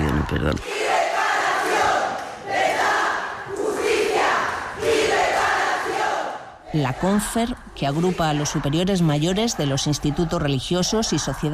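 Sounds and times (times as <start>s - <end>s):
large crowd of protesters shouting rhythmic chants: 0.0s - 11.5s
speech: 0.3s - 1.0s, 6.7s - 11.5s.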